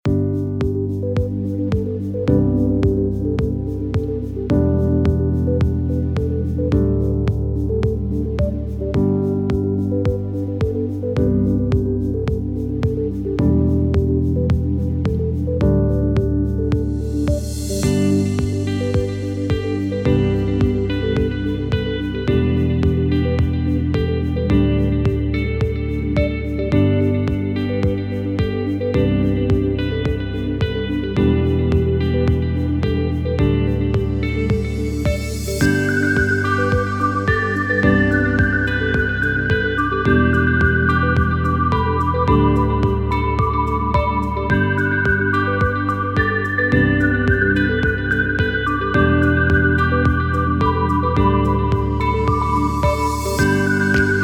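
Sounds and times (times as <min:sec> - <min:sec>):
chilled ambient music: 0:00.0 - 0:54.2.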